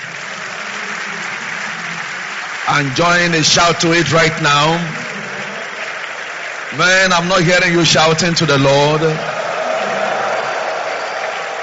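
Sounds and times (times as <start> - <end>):
audience clapping: 0.0 - 11.6
speech: 2.7 - 5.0, 6.7 - 9.3.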